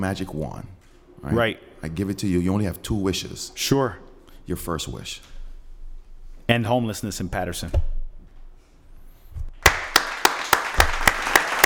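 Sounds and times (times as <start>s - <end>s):
speech: 0.0s - 5.3s, 6.5s - 7.9s
hand clapping: 9.6s - 11.6s.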